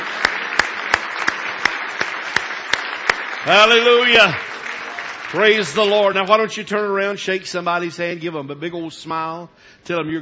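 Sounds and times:
audience hand clapping: 0:00.0 - 0:06.5
speech: 0:03.4 - 0:04.5, 0:05.3 - 0:10.1.

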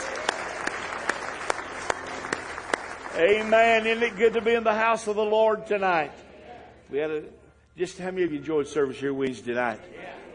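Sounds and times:
church congregation clapping in praise: 0:00.0 - 0:06.0
speech: 0:03.2 - 0:06.2, 0:06.9 - 0:10.3.

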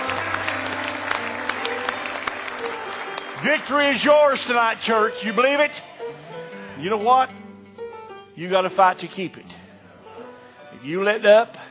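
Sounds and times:
audience hand clapping: 0:00.0 - 0:05.0
speech: 0:03.4 - 0:05.9, 0:06.8 - 0:07.4, 0:08.4 - 0:09.6, 0:10.8 - 0:11.6.

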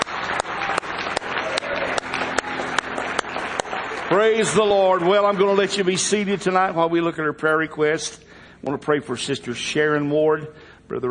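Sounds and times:
audience clapping hands in rhythm: 0:00.0 - 0:06.8
speech: 0:04.1 - 0:11.0.

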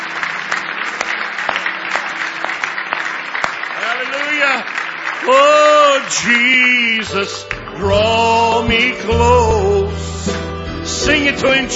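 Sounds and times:
audience clapping hands in praise: 0:00.0 - 0:08.9
speech: 0:04.4 - 0:10.0, 0:11.0 - 0:11.7.

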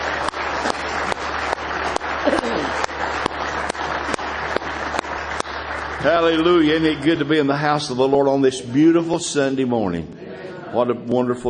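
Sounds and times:
audience clapping in praise: 0:00.0 - 0:09.2
speech: 0:06.0 - 0:11.4.

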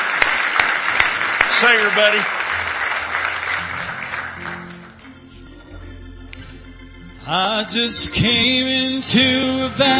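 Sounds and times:
audience hand clapping in praise: 0:00.0 - 0:05.4
speech: 0:01.6 - 0:02.7, 0:07.3 - 0:09.9.

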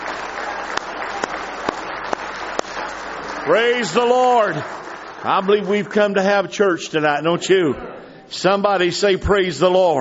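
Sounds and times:
audience clapping hands in praise: 0:00.0 - 0:06.5
speech: 0:03.4 - 0:10.0.

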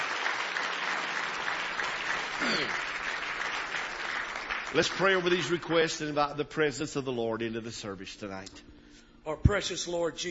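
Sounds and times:
audience hand clapping applause: 0:00.0 - 0:06.3
speech: 0:02.4 - 0:02.9, 0:04.7 - 0:08.7, 0:09.3 - 0:10.2.

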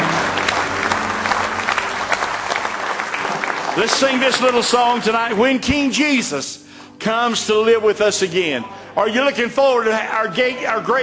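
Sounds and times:
audience clapping hands in praise: 0:00.0 - 0:05.7
speech: 0:03.8 - 0:11.0.

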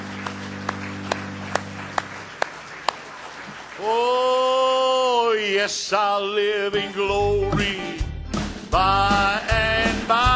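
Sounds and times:
audience hand clapping: 0:00.0 - 0:05.2
speech: 0:03.8 - 0:04.1, 0:05.6 - 0:08.0, 0:08.7 - 0:10.2.

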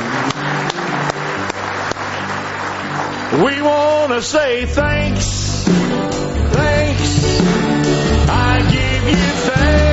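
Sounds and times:
audience hand clapping in praise: 0:00.0 - 0:04.6
speech: 0:03.3 - 0:06.0, 0:07.3 - 0:09.8.

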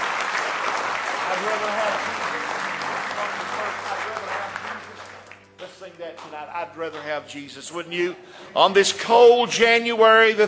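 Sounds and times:
audience applauding with hand claps: 0:00.0 - 0:08.1
speech: 0:01.4 - 0:02.4, 0:05.6 - 0:10.4.

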